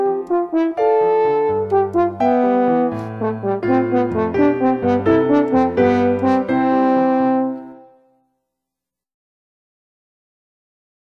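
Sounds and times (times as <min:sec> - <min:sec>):
French horn solo: 0:00.0 - 0:08.1
piano accompaniment: 0:00.0 - 0:08.1.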